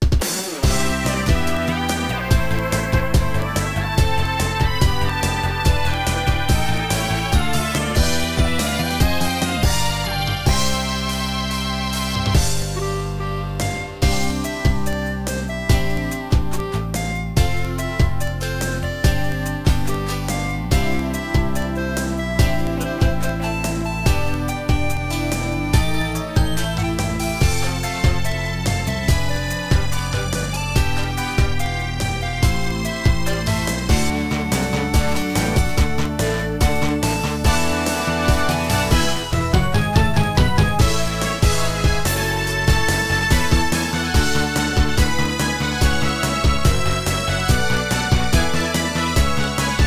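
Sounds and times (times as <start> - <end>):
instrumental music: 0.0 - 49.8.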